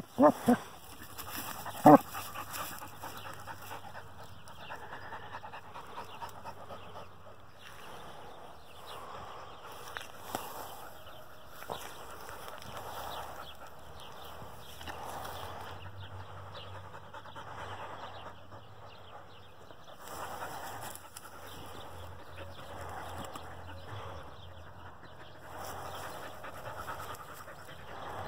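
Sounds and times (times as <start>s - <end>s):
dog panting: 0.0s - 28.2s.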